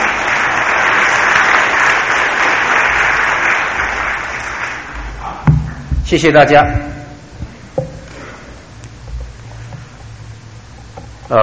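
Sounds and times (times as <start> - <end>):
audience applause welcoming speaker: 0.0 - 5.5
speech: 6.1 - 7.0.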